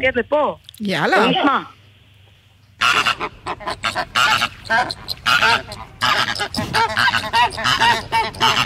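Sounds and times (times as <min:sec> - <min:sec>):
speech: 0:00.0 - 0:01.8, 0:03.2 - 0:08.6
flock of flamingos calling: 0:02.8 - 0:08.6.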